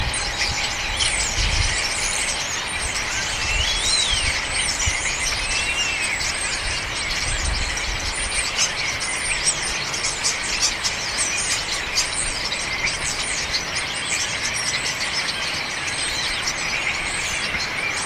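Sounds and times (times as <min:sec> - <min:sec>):
birds: 0:00.0 - 0:18.0.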